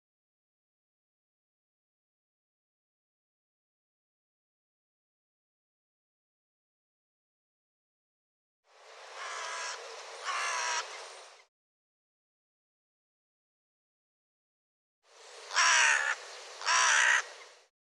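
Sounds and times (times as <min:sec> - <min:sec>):
harsh bird caws: 0:09.2 - 0:11.0, 0:15.5 - 0:17.4.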